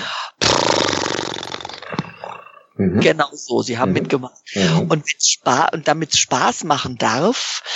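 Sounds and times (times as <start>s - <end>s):
voice imitating a horse snort with a buzzing lip trill: 0.4s - 2.7s
speech: 2.8s - 7.7s.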